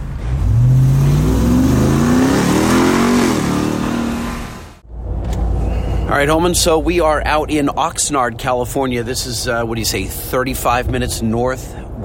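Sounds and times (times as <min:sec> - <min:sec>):
pickup truck engine revving and accelerating onto on-ramp: 0:00.2 - 0:04.8
speech: 0:06.2 - 0:12.0.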